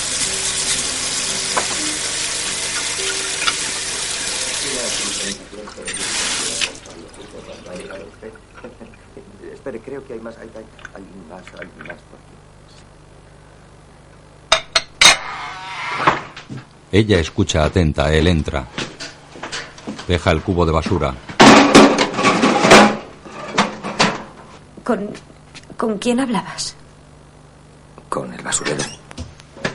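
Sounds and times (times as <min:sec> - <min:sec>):
water running from a tap: 0:00.0 - 0:08.8
speech: 0:09.9 - 0:12.5, 0:16.9 - 0:18.8, 0:20.1 - 0:21.2, 0:24.9 - 0:26.8, 0:28.2 - 0:28.9
plates clattering as set down: 0:21.4 - 0:24.3.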